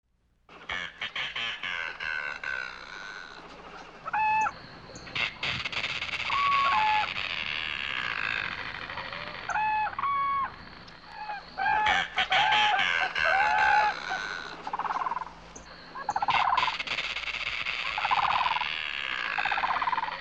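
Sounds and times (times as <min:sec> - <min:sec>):
bird clucking notes and short harmonic squeals: 0:00.5 - 0:20.1.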